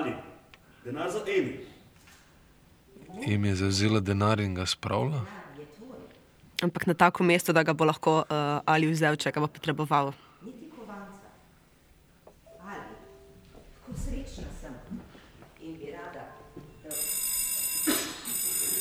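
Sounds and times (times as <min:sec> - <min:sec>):
speech: 0:00.8 - 0:01.7, 0:03.1 - 0:05.4, 0:06.6 - 0:11.0
doorbell ringing: 0:16.8 - 0:18.8.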